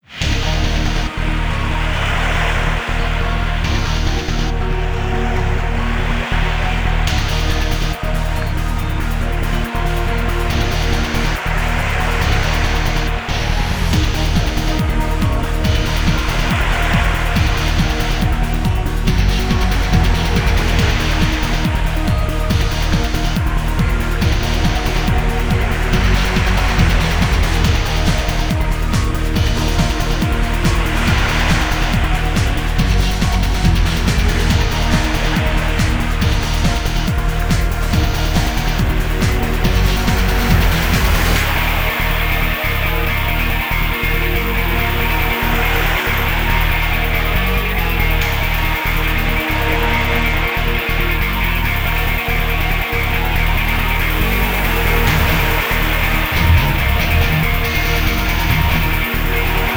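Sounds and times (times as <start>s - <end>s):
battle at sea: 0.0s - 59.7s.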